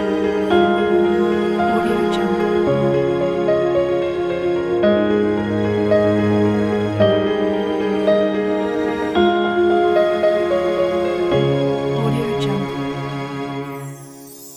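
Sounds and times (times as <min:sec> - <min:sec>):
cello: 0:00.0 - 0:14.2
orchestra melody: 0:00.0 - 0:14.5
piano: 0:00.0 - 0:14.5.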